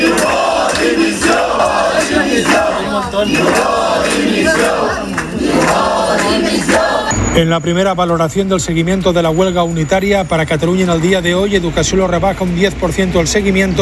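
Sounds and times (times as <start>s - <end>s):
protesting teachers shouting and chanting in a building: 0.0s - 8.2s
speech: 7.4s - 13.8s.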